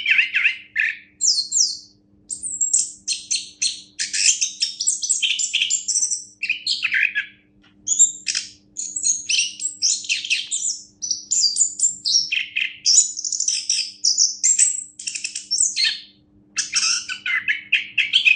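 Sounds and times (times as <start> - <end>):
Orange-headed thrush singing rich whistled and buzzy song: 0.0 - 18.3.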